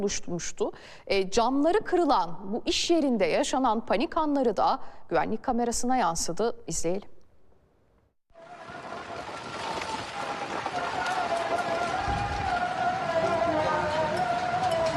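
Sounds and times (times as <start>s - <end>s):
speech: 0.0s - 7.2s
heavy rain: 8.4s - 14.9s
strong wind: 8.4s - 14.9s.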